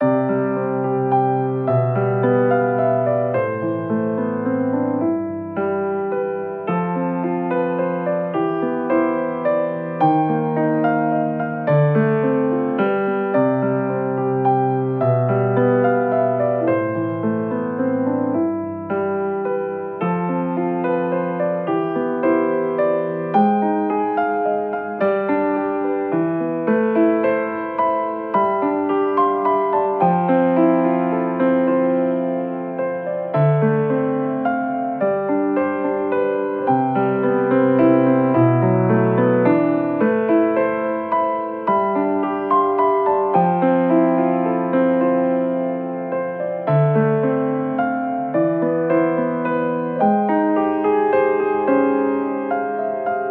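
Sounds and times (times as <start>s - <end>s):
piano loop: 0.0s - 53.2s.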